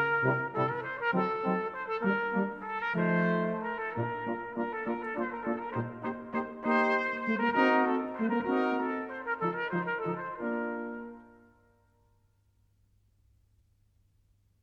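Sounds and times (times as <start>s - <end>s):
brass quintet playing a scherzo: 0.0s - 11.6s.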